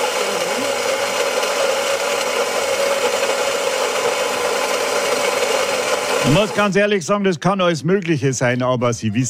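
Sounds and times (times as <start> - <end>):
coffee grinder in a coffee machine: 0.0 - 7.0
speech: 6.3 - 9.2.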